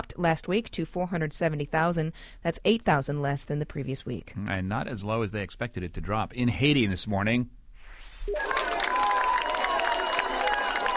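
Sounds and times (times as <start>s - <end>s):
speech: 0.1s - 7.6s
crowd cheering at a rescue in Haiti: 8.3s - 10.9s.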